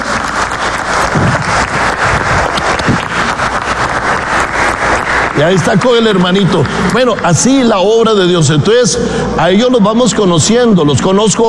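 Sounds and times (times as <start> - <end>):
audience applause: 0.0 - 8.0
speech: 5.4 - 11.4.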